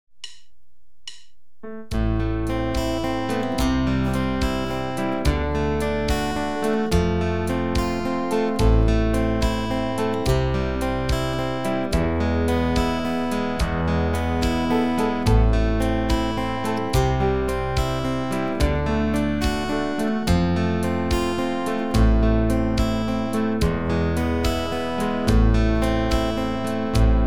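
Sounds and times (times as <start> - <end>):
guitar playing folk song: 1.7 - 27.2.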